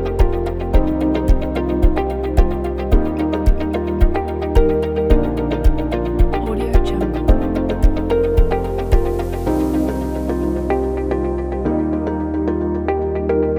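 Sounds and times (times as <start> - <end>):
ambient corporate background music: 0.0 - 13.5.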